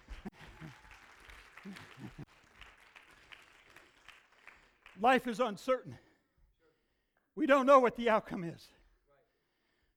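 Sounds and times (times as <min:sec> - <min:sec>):
audience hand clapping: 0:00.0 - 0:05.4
speech: 0:05.0 - 0:06.0, 0:07.4 - 0:08.8.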